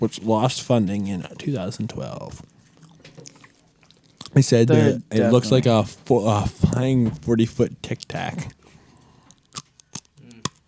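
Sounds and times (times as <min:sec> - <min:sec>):
speech: 0:00.0 - 0:02.5, 0:04.3 - 0:08.6
person chewing pretzels: 0:00.8 - 0:05.2, 0:07.8 - 0:10.6.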